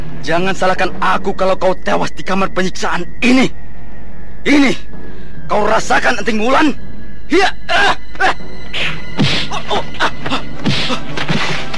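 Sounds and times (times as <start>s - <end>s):
speech: 0.2s - 3.6s, 4.4s - 8.6s, 9.5s - 10.1s
laughter: 9.5s - 11.5s
punches landing on a body in a torture chamber fight: 10.6s - 11.5s.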